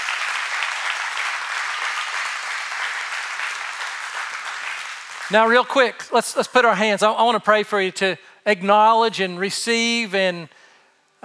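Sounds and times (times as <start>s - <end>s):
audience applause: 0.0s - 5.3s
speech: 5.3s - 10.6s.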